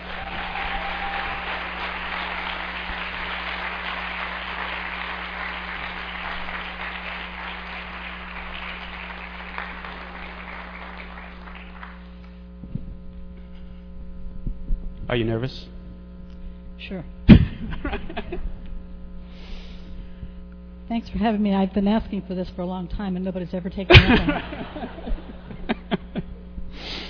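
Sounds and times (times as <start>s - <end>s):
audience applause welcoming a speaker: 0.0s - 12.4s, 24.0s - 25.9s
constant low electrical hum: 0.0s - 27.0s
speech: 15.1s - 15.7s, 16.9s - 17.2s, 17.9s - 18.5s, 20.9s - 25.3s
laughter: 17.4s - 18.5s, 23.9s - 26.5s.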